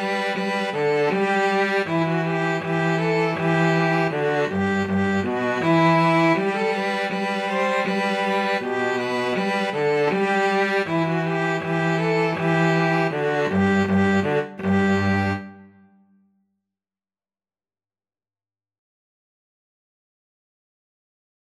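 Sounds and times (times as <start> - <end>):
string trio of two violins and cello playing: 0.0 - 15.7.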